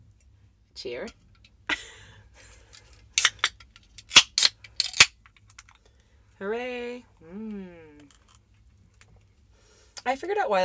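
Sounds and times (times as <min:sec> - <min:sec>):
speech: 0:00.8 - 0:01.2, 0:06.4 - 0:07.8, 0:10.1 - 0:10.6
beer can cracking open: 0:03.2 - 0:05.8.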